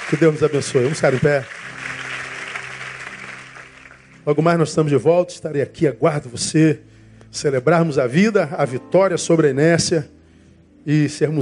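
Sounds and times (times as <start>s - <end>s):
audience applauding: 0.0s - 4.4s
speech: 0.1s - 1.8s, 4.2s - 10.2s, 10.8s - 11.3s.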